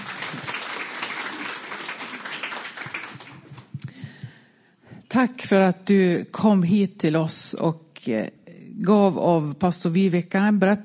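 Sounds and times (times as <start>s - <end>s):
audience applause: 0.0s - 3.8s
speech: 5.1s - 10.8s.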